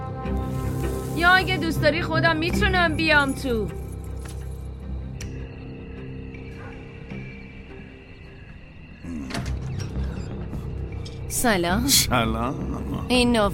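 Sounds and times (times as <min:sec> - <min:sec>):
speech: 0:00.2 - 0:00.6, 0:01.2 - 0:03.8, 0:11.4 - 0:13.5
door being opened: 0:09.1 - 0:10.6.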